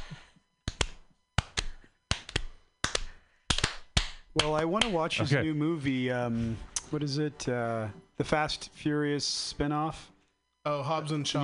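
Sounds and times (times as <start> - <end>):
slow clap: 0.7 - 5.0
speech: 4.4 - 11.4.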